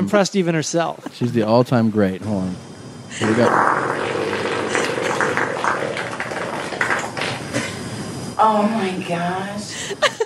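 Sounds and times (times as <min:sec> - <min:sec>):
speech: 0:00.1 - 0:03.8, 0:08.4 - 0:10.2
recording of a woman farting: 0:03.2 - 0:07.8.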